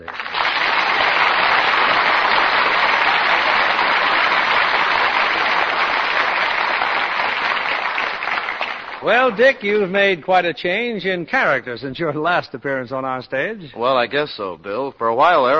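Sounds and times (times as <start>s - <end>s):
audience applause: 0.0s - 9.7s
speech: 9.0s - 15.5s.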